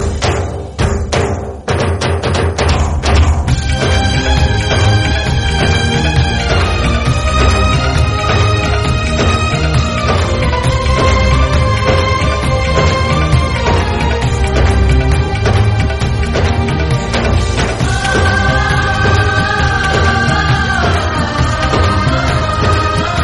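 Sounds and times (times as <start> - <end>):
instrumental music: 0.0 - 23.2.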